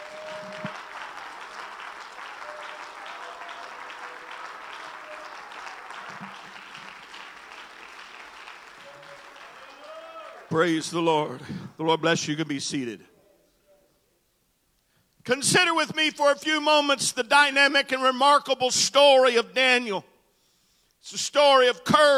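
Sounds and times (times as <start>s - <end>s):
audience clapping hands in praise: 0.0s - 11.0s
speech: 10.6s - 13.1s, 15.3s - 20.1s, 21.0s - 22.1s.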